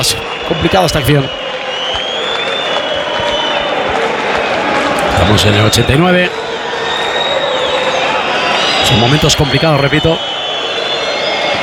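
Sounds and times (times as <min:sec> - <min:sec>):
speech: 0:00.0 - 0:01.4, 0:05.2 - 0:06.4, 0:08.9 - 0:10.3
stadium crowd roaring and shouting: 0:00.0 - 0:11.6
scattered claps: 0:01.0 - 0:05.9.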